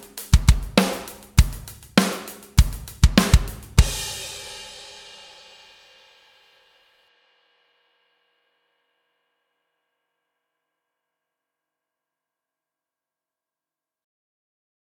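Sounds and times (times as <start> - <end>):
backing track: 0.0 - 4.7.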